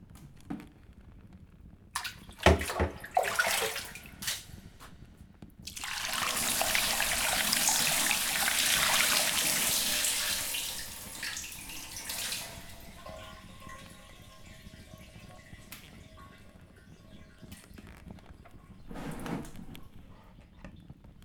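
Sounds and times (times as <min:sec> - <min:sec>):
running water rinsing shampoo off hair: 0:02.0 - 0:04.9, 0:05.7 - 0:18.9.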